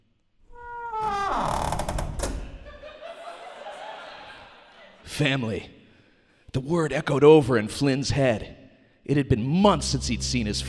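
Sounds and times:
creaky classroom door slowly shutting: 0:00.5 - 0:02.8
laughter: 0:02.6 - 0:05.1
speech: 0:05.2 - 0:05.8, 0:06.6 - 0:10.6.

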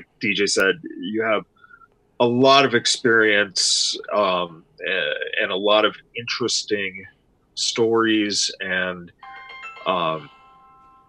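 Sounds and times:
speech: 0:00.2 - 0:01.6, 0:02.2 - 0:10.4
mobile phone ringing with a short electronic ringtone: 0:09.2 - 0:11.0.

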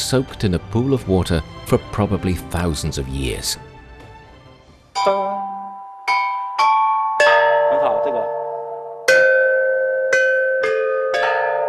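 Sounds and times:
speech: 0:00.1 - 0:03.7, 0:05.0 - 0:05.3
ancient bronze chime bells ringing: 0:05.0 - 0:11.6.

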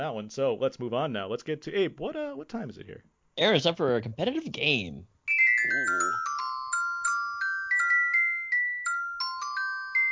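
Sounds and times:
speech: 0:00.0 - 0:06.4
old mobile phone ringtone: 0:05.3 - 0:10.1.

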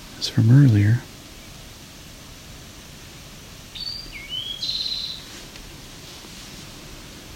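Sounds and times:
faint hiss: 0:00.0 - 0:07.3
speech: 0:00.2 - 0:01.1
wild bird singing three-part song: 0:03.7 - 0:05.3.

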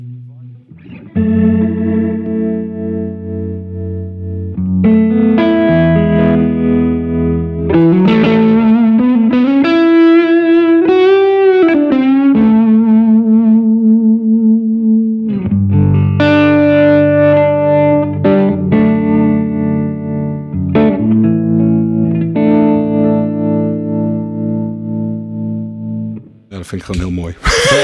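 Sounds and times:
electric guitar played through a tremolo pedal: 0:00.0 - 0:26.4
laughter: 0:26.6 - 0:27.8.

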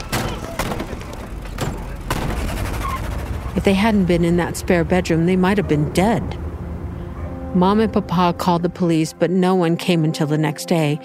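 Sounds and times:
gunshots tearing through a bedroom: 0:00.0 - 0:03.4
speech: 0:03.6 - 0:06.4, 0:07.6 - 0:11.0.

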